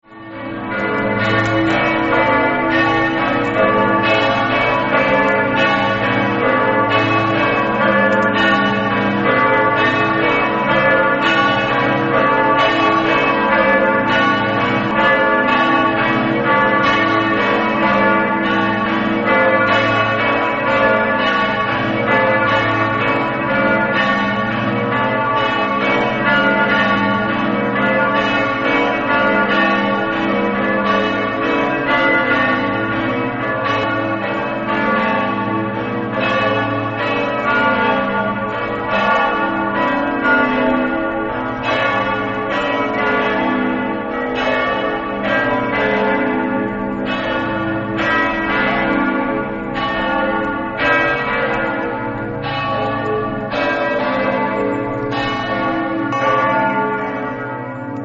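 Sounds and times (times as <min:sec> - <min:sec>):
bells ringing: 0:00.1 - 0:58.0.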